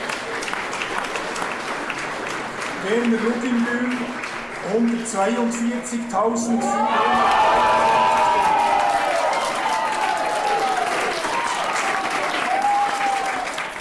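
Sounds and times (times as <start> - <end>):
crowd applauding election result: 0.0 - 13.7
speech: 2.8 - 8.2
crowd shouts and whoops: 6.4 - 13.6.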